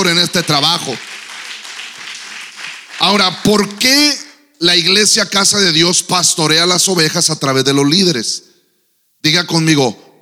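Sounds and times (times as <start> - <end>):
speech: 0.0 - 1.1, 3.0 - 8.5, 9.2 - 10.0
audience applause: 0.0 - 4.0.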